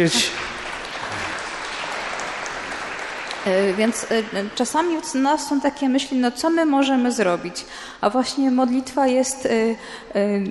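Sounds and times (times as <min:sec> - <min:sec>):
speech: 0:00.0 - 0:00.5, 0:03.4 - 0:10.4
audience applause: 0:00.0 - 0:05.5.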